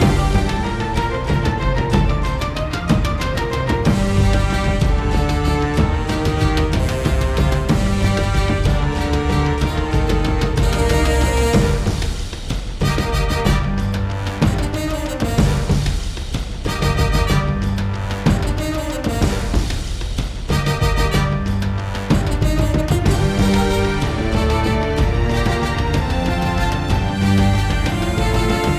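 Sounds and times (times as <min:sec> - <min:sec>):
endgame victory music: 0:00.0 - 0:28.7.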